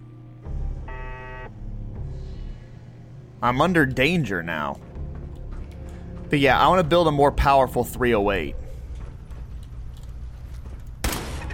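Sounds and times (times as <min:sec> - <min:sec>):
low rumble of game sound: 0:00.0 - 0:11.5
speech: 0:03.4 - 0:04.9, 0:06.3 - 0:08.6
turret gunfire in a video game: 0:11.0 - 0:11.5.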